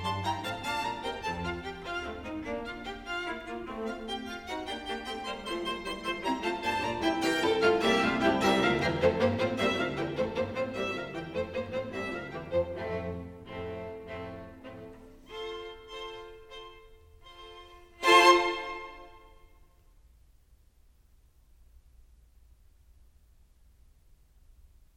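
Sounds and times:
string quartet playing in F major: 0.0s - 19.3s.

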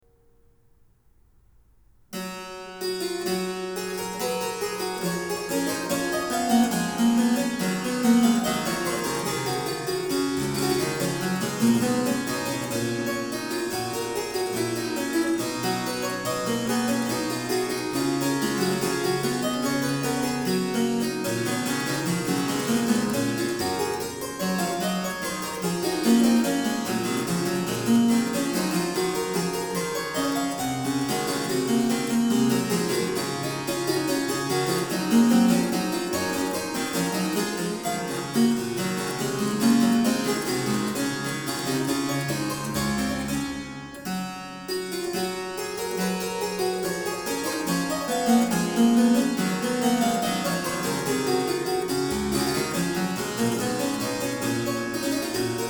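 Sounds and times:
harpsichord: 2.2s - 55.6s.

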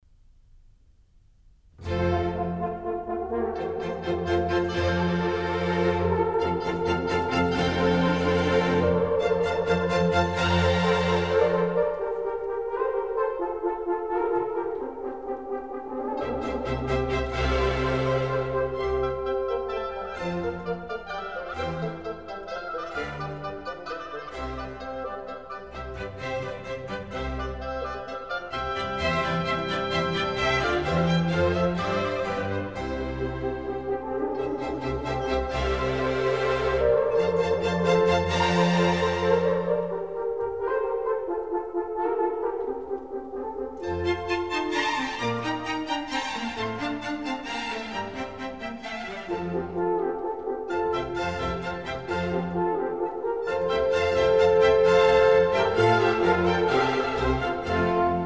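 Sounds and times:
orchestral suite: 0.2s - 58.2s.

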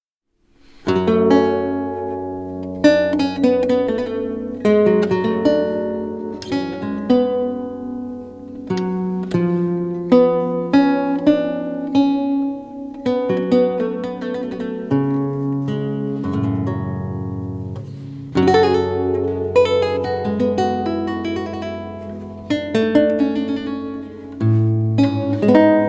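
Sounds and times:
lute sarabande: 0.5s - 25.8s.

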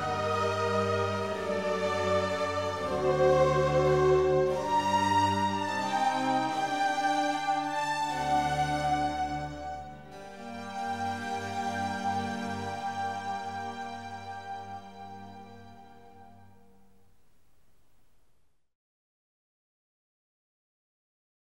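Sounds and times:
flute concerto in F major: 0.0s - 16.8s.

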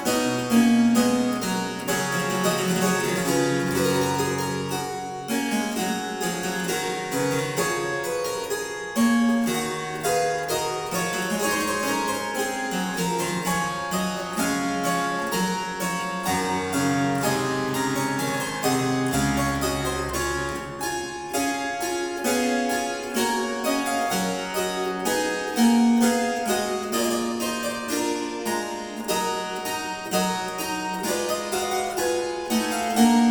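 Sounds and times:
quodlibet played on harpsichord: 0.0s - 33.2s.

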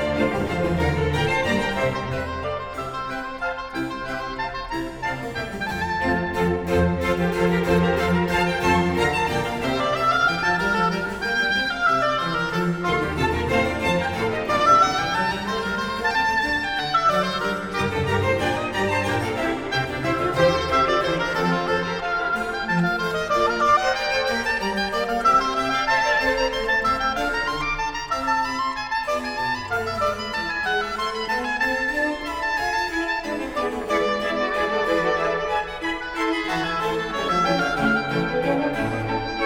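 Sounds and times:
oboe concerto in F major: 0.0s - 39.4s.

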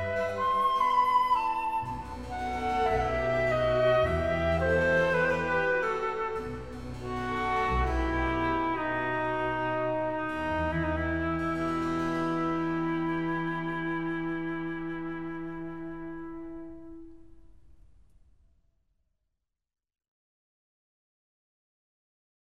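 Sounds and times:
flute concerto in G: 0.0s - 17.8s.

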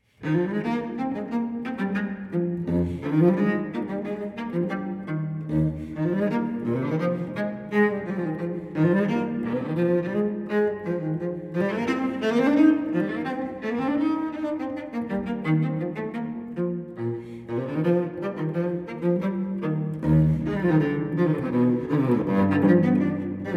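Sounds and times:
cello suite: 0.0s - 23.5s.

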